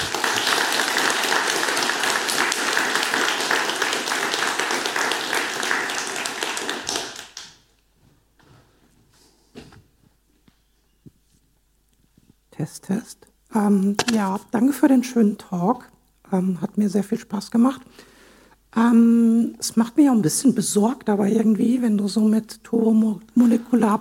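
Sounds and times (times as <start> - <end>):
audience applause after a talk: 0.0 - 7.5
speech: 13.6 - 18.1, 18.8 - 23.9.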